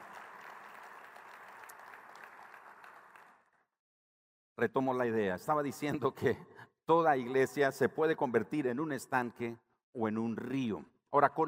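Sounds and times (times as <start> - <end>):
audience applauding a welcomed guest: 0.0 - 3.5
speech: 4.6 - 11.4.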